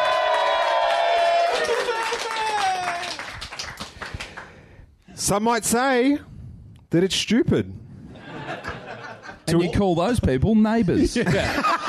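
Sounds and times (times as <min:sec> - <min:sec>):
live lounge room audience cheering and whooping: 0:00.0 - 0:03.5
live lounge room audience clapping: 0:00.0 - 0:04.7
speech: 0:05.3 - 0:06.3, 0:06.9 - 0:07.8, 0:09.5 - 0:11.8
laughter: 0:08.1 - 0:10.0, 0:11.0 - 0:11.8.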